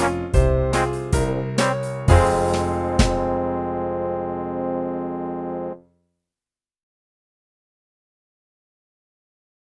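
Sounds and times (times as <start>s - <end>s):
saxophone: 0.0s - 5.8s.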